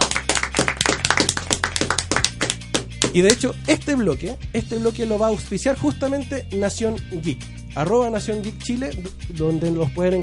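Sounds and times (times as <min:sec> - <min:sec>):
clapping applause: 0:00.0 - 0:03.1
speech: 0:03.1 - 0:10.2.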